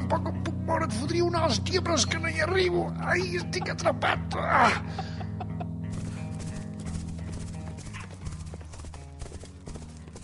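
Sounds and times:
speech: 0:00.1 - 0:05.2
laughter: 0:03.0 - 0:05.9
horse hoofbeats: 0:05.3 - 0:10.2.

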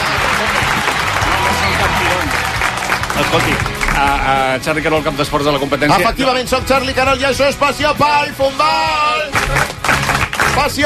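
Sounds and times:
crowd applause: 0:00.0 - 0:04.5, 0:09.3 - 0:10.8
speech: 0:03.3 - 0:09.7, 0:10.6 - 0:10.8.

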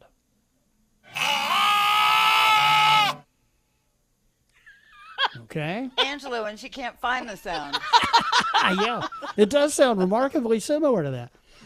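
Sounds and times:
lamb bleating: 0:01.1 - 0:03.2
speech: 0:05.5 - 0:11.4
laughter: 0:07.3 - 0:10.3.

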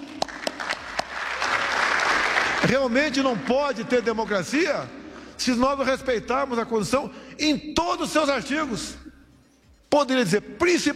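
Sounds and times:
applause for Minister Fux during a speech: 0:00.0 - 0:03.6
speech: 0:02.7 - 0:09.0, 0:09.9 - 0:10.9.

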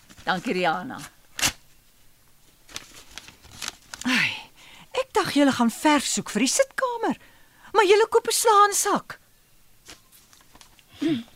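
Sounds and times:
speech: 0:00.3 - 0:01.2, 0:05.2 - 0:09.2, 0:11.0 - 0:11.3
paper envelope holding a progress report being slit open with a knife: 0:01.4 - 0:01.6.

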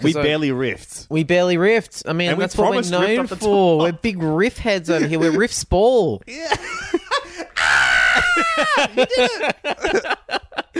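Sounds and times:
speech: 0:00.0 - 0:07.1, 0:08.4 - 0:10.2
laughter: 0:06.4 - 0:10.7
person imitating a startled woman's scream: 0:07.6 - 0:09.0.

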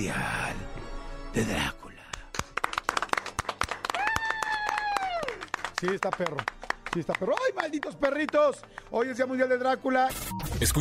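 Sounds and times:
speech: 0:00.0 - 0:00.4, 0:01.3 - 0:01.9, 0:05.8 - 0:10.7
applause: 0:02.1 - 0:09.3.

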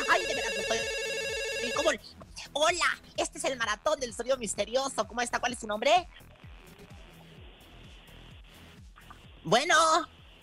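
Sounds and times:
telephone ringing with steady electronic tone: 0:00.0 - 0:02.0
speech: 0:01.8 - 0:06.3, 0:09.4 - 0:10.2.

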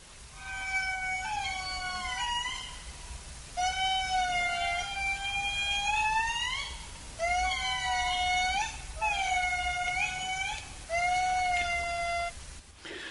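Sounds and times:
indri wailing song: 0:00.4 - 0:12.4.

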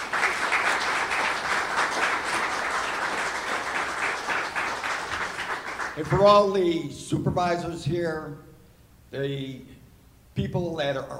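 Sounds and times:
audience applause: 0:00.0 - 0:06.3
speech: 0:06.0 - 0:08.5, 0:09.1 - 0:09.8, 0:10.4 - 0:11.1.

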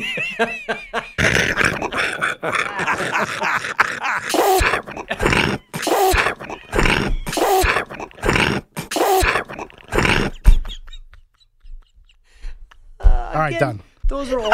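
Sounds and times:
speech: 0:00.0 - 0:00.7
laughter: 0:00.0 - 0:13.4, 0:14.2 - 0:14.5
growly grunts and throaty vocal noises: 0:01.2 - 0:10.4
loud wet sneezes: 0:04.2 - 0:10.3.

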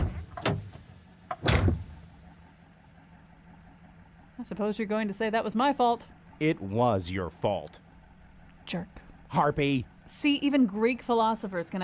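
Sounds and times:
car door slamming shut: 0:00.0 - 0:02.1
speech: 0:04.4 - 0:07.8, 0:08.7 - 0:11.8.

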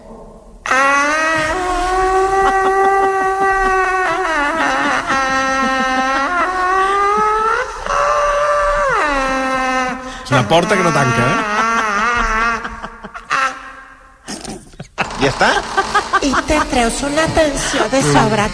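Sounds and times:
imitated scream: 0:00.7 - 0:13.7
laughter: 0:01.3 - 0:18.5
speech: 0:10.5 - 0:11.7, 0:15.2 - 0:18.5.

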